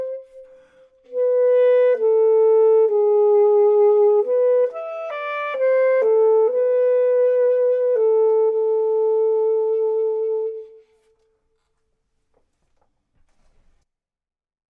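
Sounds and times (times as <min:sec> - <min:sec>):
saxophone: 0:00.0 - 0:11.3
clarinet: 0:00.0 - 0:11.8.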